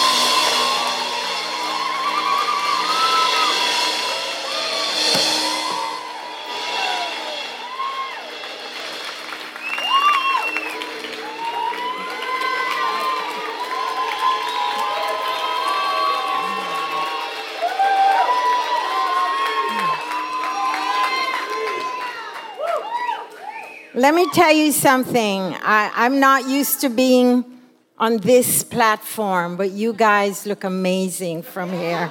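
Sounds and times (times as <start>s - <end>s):
church congregation cheering to welcome a speaker: 0.0s - 24.9s
scattered clapping: 8.2s - 23.9s
speech: 24.0s - 32.0s.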